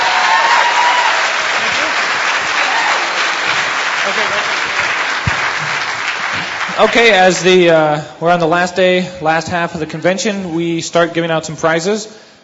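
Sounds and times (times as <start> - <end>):
audience applause: 0.0 - 7.4
speech: 6.8 - 12.3.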